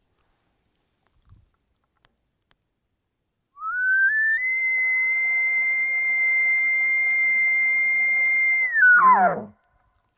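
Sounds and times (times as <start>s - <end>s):
elk locator call blown on a game call imitating a bull elk: 3.6s - 9.7s.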